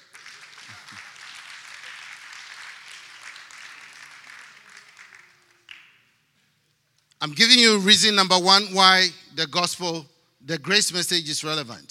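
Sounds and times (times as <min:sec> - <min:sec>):
audience clapping: 0:00.0 - 0:06.3
speech: 0:07.2 - 0:11.8.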